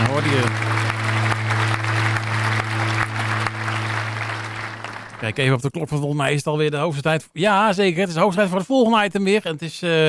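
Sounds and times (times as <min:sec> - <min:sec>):
low steady hum: 0:00.0 - 0:05.5
crowd applause: 0:00.0 - 0:05.6
speech: 0:00.2 - 0:00.8, 0:05.2 - 0:10.0.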